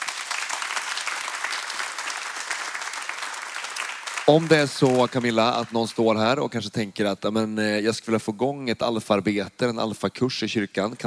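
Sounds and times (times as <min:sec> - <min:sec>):
audience applause: 0:00.0 - 0:06.2
speech: 0:04.3 - 0:11.0.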